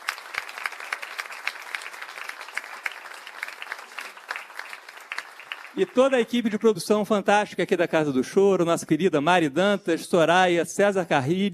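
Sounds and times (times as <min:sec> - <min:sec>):
audience applause: 0:00.0 - 0:06.6
speech: 0:05.8 - 0:11.5.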